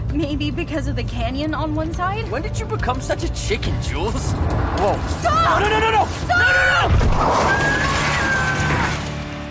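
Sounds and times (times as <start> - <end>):
speech: 0.2 - 8.0
car crashing off a cliff: 4.8 - 9.4.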